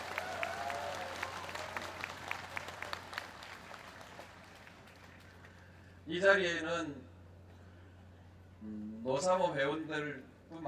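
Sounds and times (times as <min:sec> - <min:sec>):
crowd applause: 0:00.0 - 0:05.7
speech: 0:06.1 - 0:07.1, 0:08.6 - 0:10.6.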